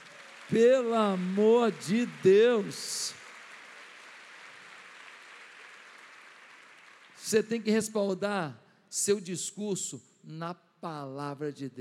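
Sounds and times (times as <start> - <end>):
audience applause: 0.0 - 7.4
speech: 0.5 - 3.2, 7.3 - 11.7.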